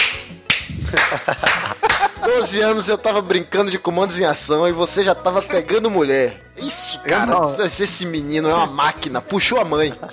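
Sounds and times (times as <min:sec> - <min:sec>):
hand claps: 0:00.0 - 0:02.2
laughter: 0:00.7 - 0:02.7, 0:09.6 - 0:10.1
speech: 0:00.9 - 0:01.6, 0:02.3 - 0:10.1.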